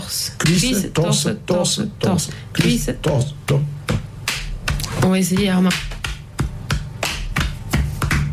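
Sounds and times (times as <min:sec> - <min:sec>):
people talking: 0:00.0 - 0:03.7, 0:04.8 - 0:05.9
body percussion of hands slapping thighs and chest imitating threshing flails: 0:03.9 - 0:08.3.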